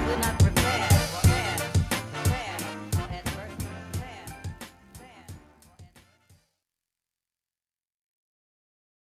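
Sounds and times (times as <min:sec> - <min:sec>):
Christmas hip hop sample: 0:00.0 - 0:06.4.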